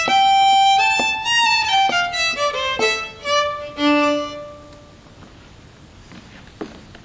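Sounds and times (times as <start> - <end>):
old Rheinländer folk dance music: 0.0 - 5.0.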